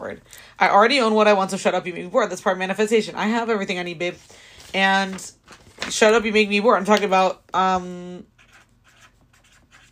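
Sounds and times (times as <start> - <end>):
speech: 0.0 - 8.3
pen scratching across paper writing by hand: 8.4 - 9.9.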